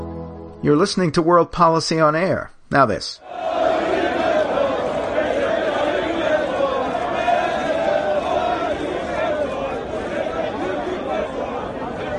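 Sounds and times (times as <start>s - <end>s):
speech: 0.6s - 3.5s
supporters cheering in the streets of Ankara: 3.2s - 12.1s.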